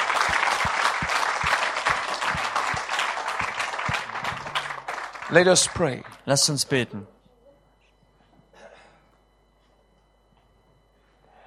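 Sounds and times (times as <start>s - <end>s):
church congregation clapping in praise of Jesus: 0.0s - 6.7s
speech: 5.3s - 7.2s.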